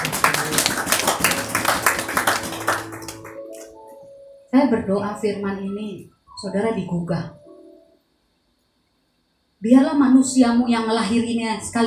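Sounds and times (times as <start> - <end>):
audience applause: 0.0 - 3.8
speech: 4.6 - 7.4, 9.6 - 11.8.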